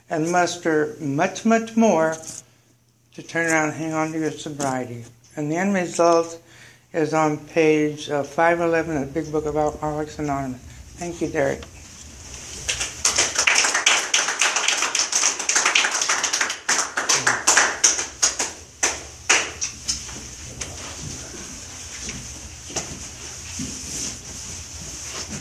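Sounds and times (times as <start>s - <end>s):
speech: 0.1s - 2.4s, 3.2s - 11.7s
audience applause: 12.5s - 19.8s.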